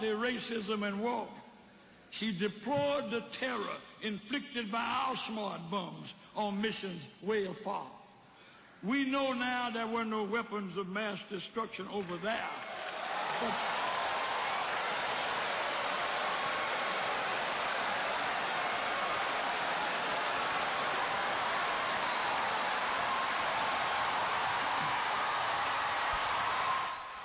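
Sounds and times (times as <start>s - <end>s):
speech: 0.0s - 1.4s, 2.1s - 8.0s, 8.8s - 12.7s, 13.4s - 13.8s
enormous applause from an audience: 12.6s - 27.2s.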